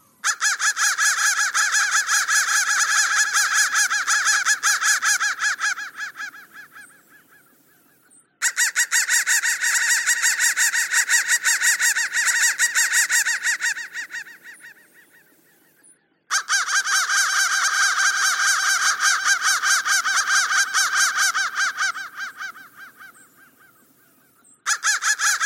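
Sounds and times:
crow cawing: 0:00.2 - 0:07.7, 0:08.4 - 0:15.4, 0:16.3 - 0:24.0, 0:24.7 - 0:25.4.

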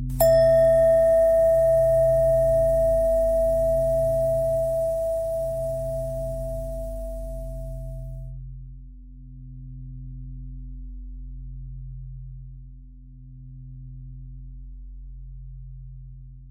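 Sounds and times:
bells ringing: 0:00.2 - 0:08.2.

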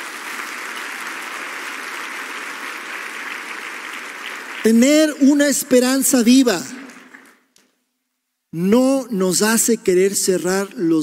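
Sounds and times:
audience applause: 0:00.0 - 0:05.1
speech: 0:04.6 - 0:06.8, 0:08.6 - 0:11.0.

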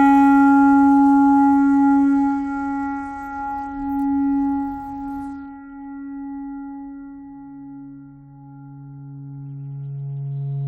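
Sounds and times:
clarinet playing a pentatonic scale: 0:00.0 - 0:05.5.

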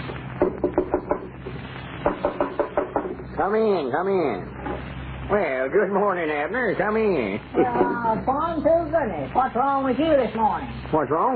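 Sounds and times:
knocking on a door: 0:00.4 - 0:01.3, 0:02.0 - 0:03.2
speech: 0:03.4 - 0:11.3.

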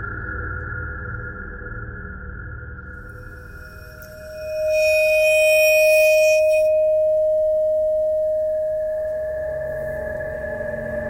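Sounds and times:
bowed metal vibes playing pentatonic: 0:03.2 - 0:11.0.

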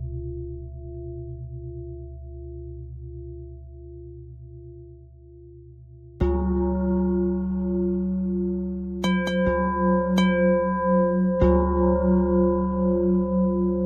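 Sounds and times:
pentatonic bell melody: 0:06.3 - 0:13.8.

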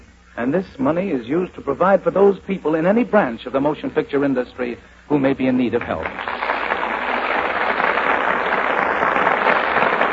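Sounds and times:
speech: 0:00.4 - 0:06.3
studio audience applause: 0:06.0 - 0:10.1.

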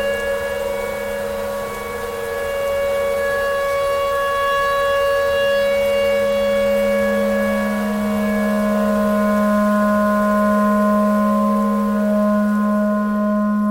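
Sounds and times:
clarinet tornado siren noise: 0:00.0 - 0:13.6.

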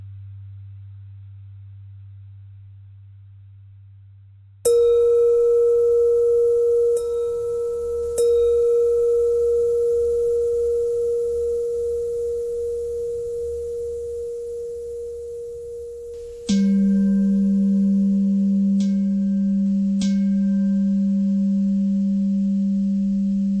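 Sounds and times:
bell: 0:04.7 - 0:23.5.

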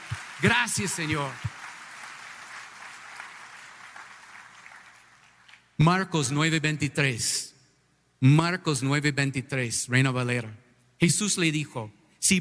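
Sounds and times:
applause: 0:00.0 - 0:05.8
speech: 0:00.4 - 0:01.5, 0:05.8 - 0:07.5, 0:08.2 - 0:12.3.

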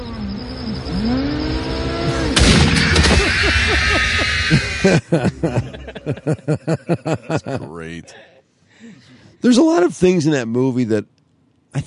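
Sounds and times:
rumbling vehicle in a movie scene: 0:00.0 - 0:04.8
speech: 0:00.7 - 0:01.2, 0:04.8 - 0:11.8
loud gunshot in a movie scene: 0:02.3 - 0:03.4
laughter: 0:02.8 - 0:08.1.

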